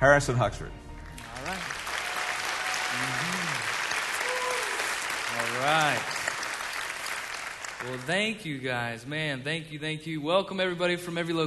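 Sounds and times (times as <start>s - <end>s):
speech: 0.0s - 0.8s, 5.6s - 6.1s, 7.8s - 11.4s
audience clapping welcoming a speaker at a Savannah Christian gathering: 1.0s - 8.6s.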